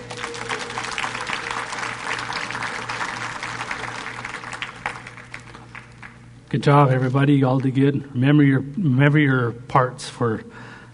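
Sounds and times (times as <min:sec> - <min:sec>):
audience clapping: 0:00.0 - 0:06.4
speech: 0:06.5 - 0:10.6.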